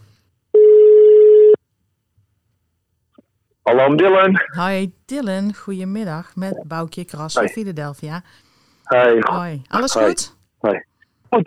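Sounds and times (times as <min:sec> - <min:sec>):
ringback tone of an outgoing phone call: 0:00.6 - 0:01.6
speech: 0:03.7 - 0:11.4.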